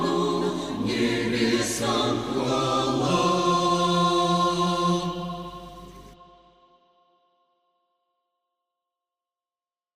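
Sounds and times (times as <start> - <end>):
French Christmas carol: 0.0 - 7.0.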